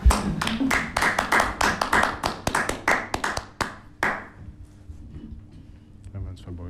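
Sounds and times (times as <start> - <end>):
hand clapping: 0.0 - 4.4.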